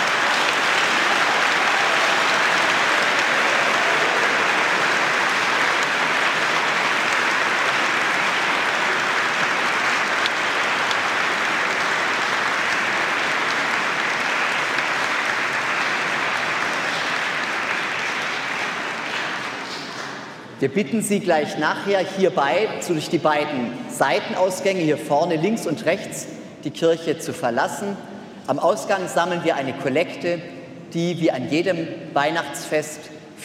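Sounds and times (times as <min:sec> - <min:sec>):
audience applause in church: 0:00.0 - 0:20.4
speech: 0:20.6 - 0:33.4.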